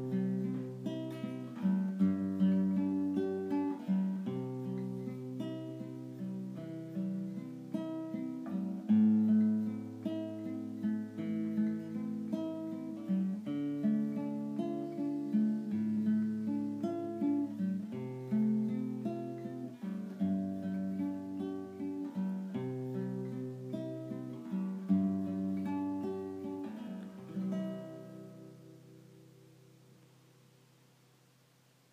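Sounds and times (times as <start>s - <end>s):
guitar playing relaxation music: 0.0s - 30.3s.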